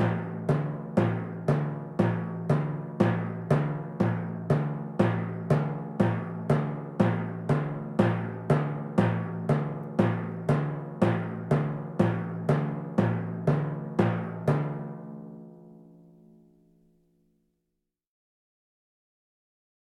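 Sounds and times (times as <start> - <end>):
timpani: 0.0 - 15.8
drums: 0.0 - 16.4.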